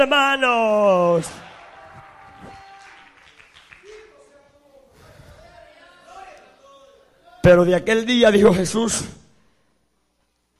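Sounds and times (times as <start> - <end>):
speech: 0.0 - 1.4, 7.4 - 9.2
audience clapping: 1.1 - 4.6.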